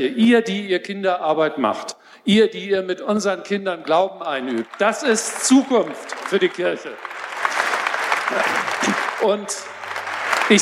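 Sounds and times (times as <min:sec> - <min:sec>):
speech: 0:00.0 - 0:07.1, 0:08.3 - 0:09.8
applause: 0:03.8 - 0:10.6.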